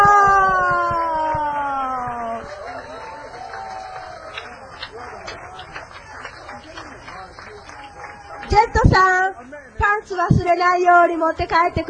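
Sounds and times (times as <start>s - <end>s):
audience applause: 0.1s - 9.0s
speech: 10.6s - 11.8s.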